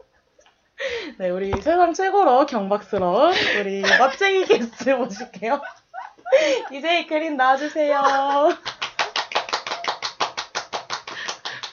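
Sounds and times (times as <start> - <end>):
speech: 1.2 - 8.7
laughter: 3.3 - 7.0, 7.9 - 8.8
clapping sound effect: 8.6 - 11.7.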